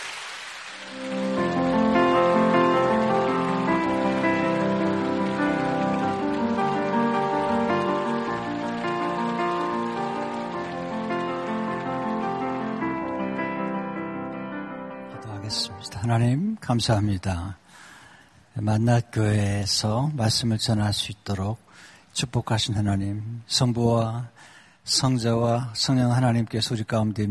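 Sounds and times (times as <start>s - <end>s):
audience applause: 0.0s - 14.5s
speech: 16.1s - 17.6s, 18.6s - 27.2s.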